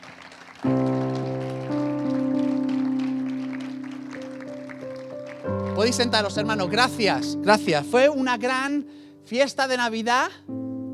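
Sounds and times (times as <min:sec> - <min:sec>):
audience applause: 0:00.0 - 0:06.4
sustained keyboard chords: 0:00.0 - 0:10.9
speech: 0:05.8 - 0:10.6.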